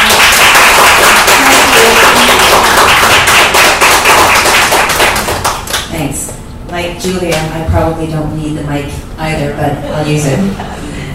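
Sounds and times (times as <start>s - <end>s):
audience applause: 0.0s - 5.8s
speech: 7.0s - 11.1s.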